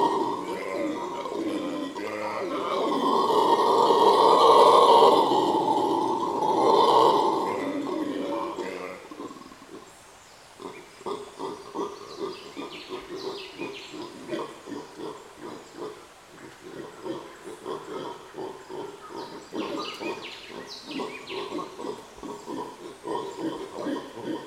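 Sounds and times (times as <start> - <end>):
howler monkeys roaring chorus in the Sierra Nevada: 0.0 - 9.9, 10.6 - 24.4.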